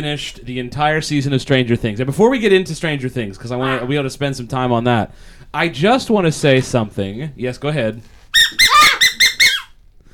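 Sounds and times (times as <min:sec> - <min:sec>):
speech: 0:00.0 - 0:08.2
duck call squeak sound effect: 0:08.4 - 0:09.8.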